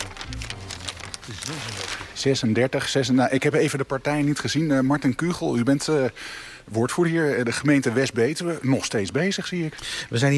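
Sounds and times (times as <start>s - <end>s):
ballot papers rustling as votes are counted in West-Betuwe: 0.0s - 2.6s
speech: 1.3s - 10.3s.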